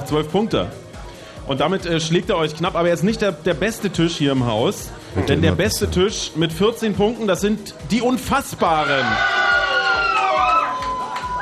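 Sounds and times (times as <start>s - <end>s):
speech: 0.1s - 0.8s, 1.5s - 9.4s
rhythmic low thumps: 5.1s - 6.5s
table of quiz guests cheering and whooping: 9.0s - 11.4s.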